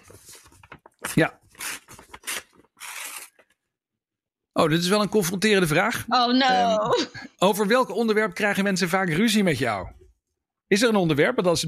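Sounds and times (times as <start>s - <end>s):
paper envelope tearing open: 0.0s - 3.6s
speech: 1.2s - 1.4s, 4.6s - 10.0s, 10.7s - 11.6s.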